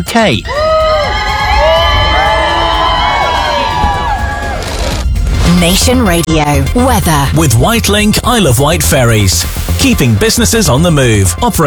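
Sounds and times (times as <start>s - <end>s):
speech: 0.0s - 0.6s, 5.6s - 11.6s
crowd cheering for the Duke and Duchess of Sussex: 0.4s - 6.1s
high shouts and whistles: 0.5s - 4.9s.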